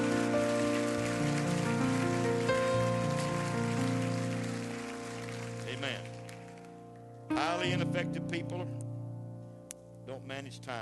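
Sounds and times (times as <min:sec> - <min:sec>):
audience clapping hands: 0:00.0 - 0:07.1
speech: 0:05.8 - 0:06.1, 0:07.3 - 0:08.8, 0:10.1 - 0:10.8.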